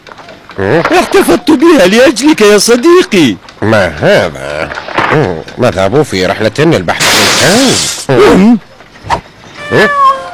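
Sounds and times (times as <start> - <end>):
speech: 0.6 - 8.6, 9.7 - 10.1
cat meowing while looking for food: 9.6 - 10.3.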